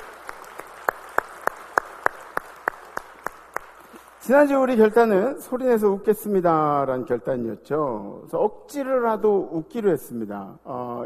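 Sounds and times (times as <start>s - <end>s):
audience applauding: 0.0s - 4.2s
speech: 4.2s - 11.0s.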